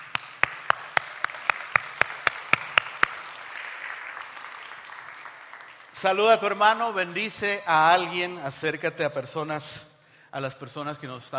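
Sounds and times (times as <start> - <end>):
audience applauding: 0.0 - 6.9
speech: 6.0 - 11.3.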